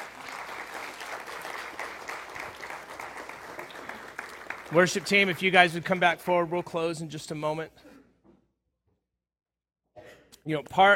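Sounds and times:
audience clapping: 0:00.0 - 0:06.5
speech: 0:04.7 - 0:07.9, 0:10.4 - 0:10.9.

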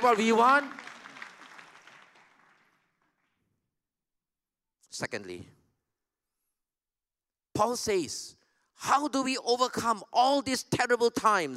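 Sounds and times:
speech: 0:00.0 - 0:00.8, 0:05.0 - 0:05.6, 0:07.6 - 0:11.5
audience clapping: 0:00.0 - 0:03.5.

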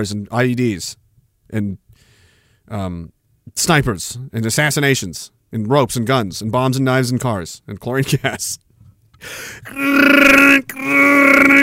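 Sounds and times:
speech: 0:00.0 - 0:01.8, 0:02.7 - 0:08.6, 0:09.2 - 0:11.6
voice imitating computer noises: 0:09.7 - 0:11.6.

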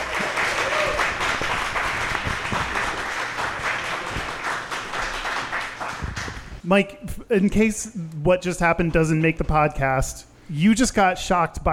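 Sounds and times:
audience applause: 0:00.0 - 0:06.6
speech: 0:06.7 - 0:11.7.

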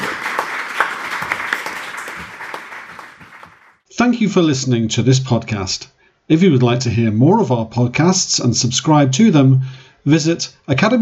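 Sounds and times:
audience applause: 0:00.0 - 0:03.8
speech: 0:04.0 - 0:11.0.

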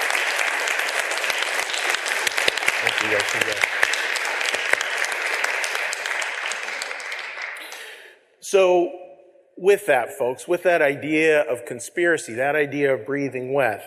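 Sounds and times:
round of applause: 0:00.0 - 0:08.1
speech: 0:02.8 - 0:03.9, 0:08.5 - 0:09.0, 0:09.6 - 0:13.8.

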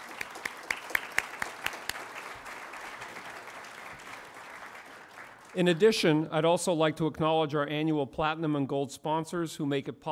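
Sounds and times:
audience applause: 0:00.0 - 0:06.0
speech: 0:05.6 - 0:10.1.

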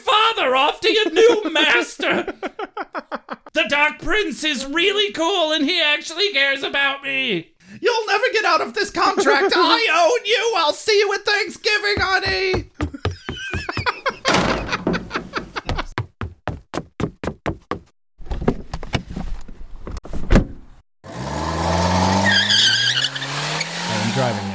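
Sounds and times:
speech: 0:00.4 - 0:02.7, 0:03.7 - 0:12.8
laughter: 0:00.8 - 0:03.5, 0:09.0 - 0:10.1, 0:12.9 - 0:16.0
rapid sharp knocks: 0:12.0 - 0:17.9
car engine revving: 0:21.0 - 0:24.5.

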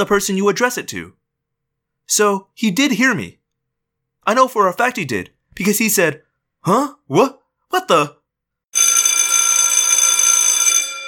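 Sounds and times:
speech: 0:00.0 - 0:01.2, 0:02.1 - 0:03.4, 0:04.2 - 0:08.2
loud bell ringing: 0:08.8 - 0:11.0.

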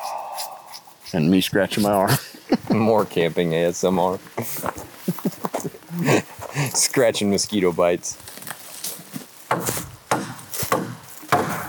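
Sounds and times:
speech: 0:01.1 - 0:08.4
laughter: 0:01.4 - 0:07.3
splintery rustle: 0:04.2 - 0:11.6
hatchet chopping wood: 0:09.5 - 0:11.6.

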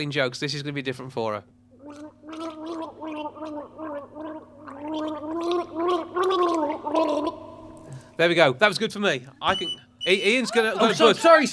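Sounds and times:
speech: 0:00.0 - 0:02.5, 0:03.4 - 0:11.5
person gargling a mouthful of water: 0:01.8 - 0:07.9
laughter: 0:10.1 - 0:11.5.

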